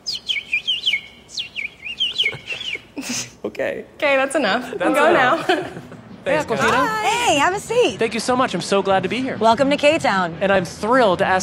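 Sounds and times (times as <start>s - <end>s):
person whistling bird imitation: 0.1s - 2.9s
laughter: 2.1s - 3.4s, 4.6s - 7.3s
speech: 3.0s - 11.4s.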